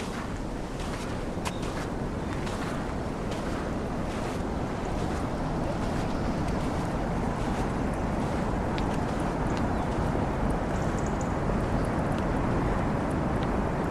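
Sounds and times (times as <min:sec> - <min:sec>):
outdoor soundscape: 0:00.0 - 0:13.8.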